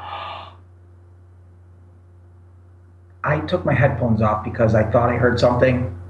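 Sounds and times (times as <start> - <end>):
person breathing: 0.0 - 0.6
speech: 3.2 - 6.0.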